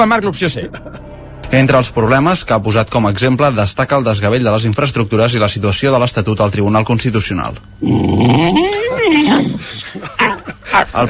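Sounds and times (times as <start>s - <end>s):
speech: 0.0s - 11.0s
dog whimpering: 8.0s - 9.6s.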